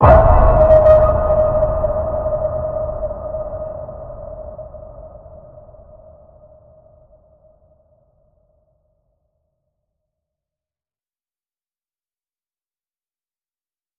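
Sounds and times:
deep ping tone in D sharp: 0.0s - 4.5s.

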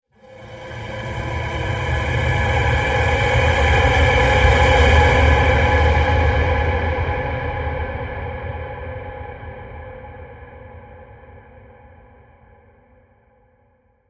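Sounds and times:
Outer Rim space transition: 0.2s - 6.9s.

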